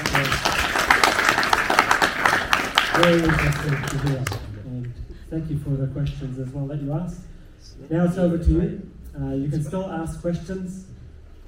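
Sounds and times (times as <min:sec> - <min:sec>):
audience applause: 0:00.0 - 0:04.6
speech: 0:03.0 - 0:04.5, 0:05.3 - 0:11.0.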